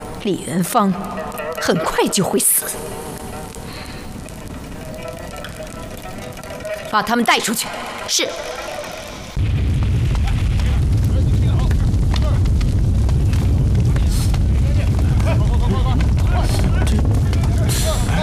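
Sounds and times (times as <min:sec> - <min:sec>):
scattered crackles and booms: 0:00.0 - 0:18.2
speech: 0:00.2 - 0:03.0, 0:06.9 - 0:08.7
hidden mechanism activating with a loud deep rumble: 0:09.4 - 0:18.2.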